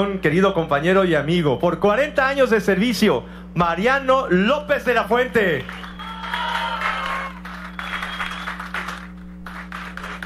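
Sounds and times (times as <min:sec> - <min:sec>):
speech: 0:00.0 - 0:06.5
applause for an honoree: 0:05.6 - 0:10.2.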